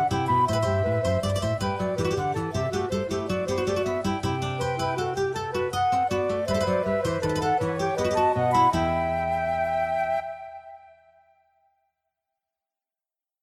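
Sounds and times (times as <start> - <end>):
guitars: 0.0 - 10.6
flutes: 0.0 - 11.7.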